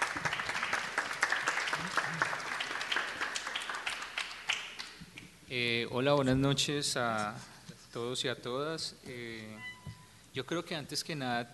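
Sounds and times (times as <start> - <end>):
audience applause: 0.0 - 4.9
speech: 5.5 - 9.7, 10.4 - 11.5.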